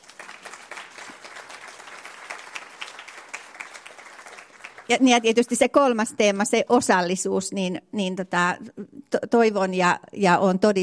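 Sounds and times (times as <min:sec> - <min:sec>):
audience applause at a college gathering: 0:00.0 - 0:05.2
speech: 0:04.9 - 0:10.8.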